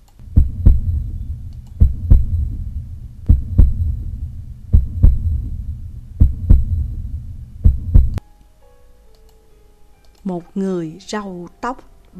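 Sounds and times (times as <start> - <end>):
fast heartbeat: 0.3 - 8.2
speech: 11.0 - 12.1.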